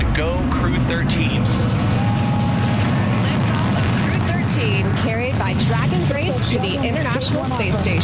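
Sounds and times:
SpaceX Falcon 9 rocket launching from Cape Canaveral: 0.0 - 5.1
speech: 0.9 - 1.9, 4.5 - 8.0.

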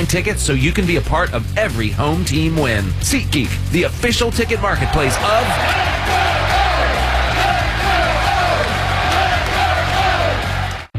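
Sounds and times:
speech: 0.1 - 6.5
large stadium crowd of baseball fans cheering: 4.5 - 10.9.

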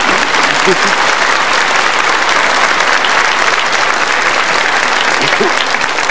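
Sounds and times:
audience laughing: 0.0 - 1.5, 4.6 - 5.9
audience applauding: 0.0 - 6.0.

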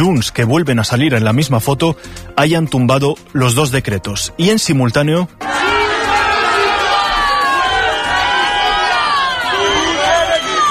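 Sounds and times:
speech: 0.0 - 5.6
crowd outside parliament reacting to vote: 5.4 - 10.6.

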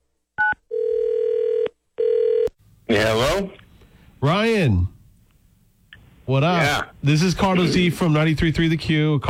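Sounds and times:
longer steady phone tone: 0.4 - 2.5
speech: 2.9 - 3.6, 4.2 - 4.9, 6.3 - 9.2.

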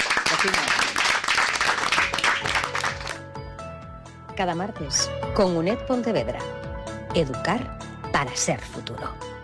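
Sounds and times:
audience applause for a guest: 0.0 - 3.2
speech: 0.4 - 0.8, 4.4 - 9.3.

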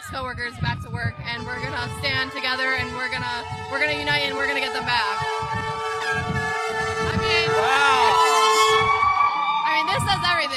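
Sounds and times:
speech: 0.1 - 8.1
Chicago Fire Department fire truck siren: 0.6 - 10.5
fire truck horn honking in support: 1.2 - 9.3.

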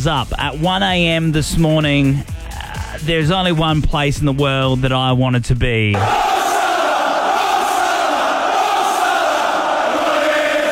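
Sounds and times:
speech: 0.0 - 2.4, 3.0 - 6.3
football crowd at Anfield stadium, Liverpool, cheering Mohamed Salah: 6.0 - 10.7.

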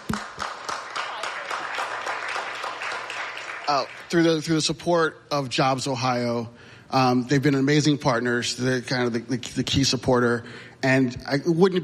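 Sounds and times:
audience applause: 0.0 - 4.4
speech: 3.7 - 11.8.

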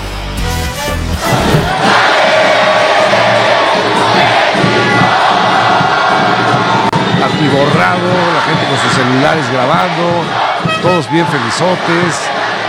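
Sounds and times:
large crowd cheering at airport for team arrival: 1.1 - 12.6
speech: 7.8 - 12.4.

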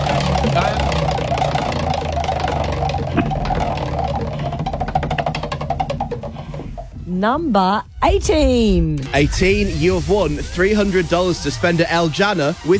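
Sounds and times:
prize wheel spinning during a birthday giveaway: 0.0 - 7.0
low hum: 0.0 - 12.0
speech: 7.2 - 12.7.

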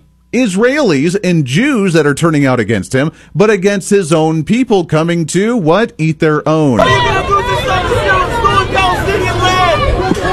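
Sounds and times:
speech: 0.3 - 7.3
crowd of protesters yelling: 6.8 - 10.3.

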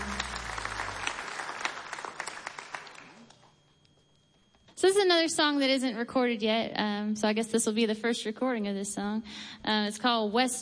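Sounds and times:
audience clapping at a live music show at Mount Sage: 0.0 - 3.5
speech: 4.8 - 10.6.

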